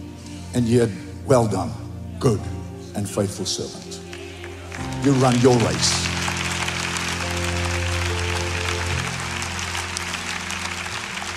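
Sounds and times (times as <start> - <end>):
sustained low keyboard or organ chords: 0.0 - 11.3
speech: 0.6 - 4.0, 4.8 - 6.1
audience clapping hands: 4.0 - 11.3.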